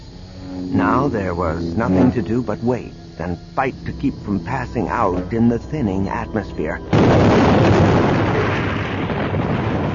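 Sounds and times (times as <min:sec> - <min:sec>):
speech: 0:00.8 - 0:08.1
explosion of power packs: 0:06.9 - 0:09.9.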